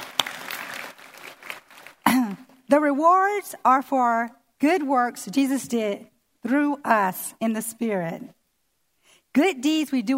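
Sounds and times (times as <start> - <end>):
audience applause honoring church pastors and leaders: 0.0 - 2.1
speech: 2.7 - 8.4, 9.3 - 10.1.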